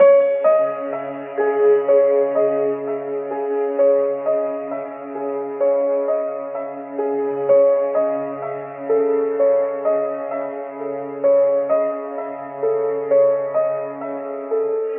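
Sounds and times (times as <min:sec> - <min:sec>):
sad piano loop: 0:00.0 - 0:14.9.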